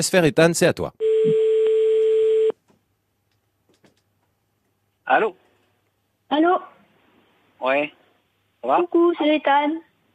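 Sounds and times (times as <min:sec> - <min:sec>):
speech: 0:00.0 - 0:01.4, 0:05.1 - 0:05.4, 0:06.3 - 0:06.7, 0:07.6 - 0:08.0, 0:08.6 - 0:09.9
telephone ringing tone on outgoing call: 0:01.0 - 0:02.6.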